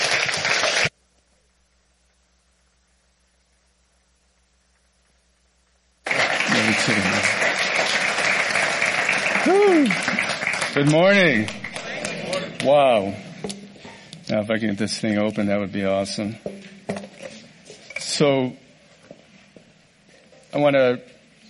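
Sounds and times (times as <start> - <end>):
audience clapping: 0.0 - 0.9, 6.0 - 13.2
speech: 6.8 - 7.1, 10.8 - 11.6, 12.6 - 13.2, 14.3 - 16.5, 18.2 - 18.6, 20.6 - 21.1
voices and whoops: 9.2 - 10.2.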